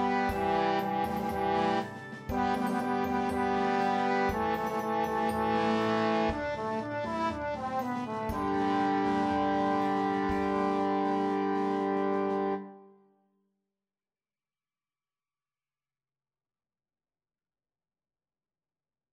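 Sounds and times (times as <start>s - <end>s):
trombone B flat note: 0.0s - 12.9s.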